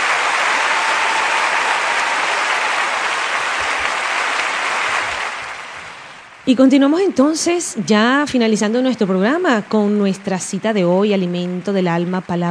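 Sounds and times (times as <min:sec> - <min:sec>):
crowd applause: 0:00.0 - 0:06.3
speech: 0:06.5 - 0:12.5.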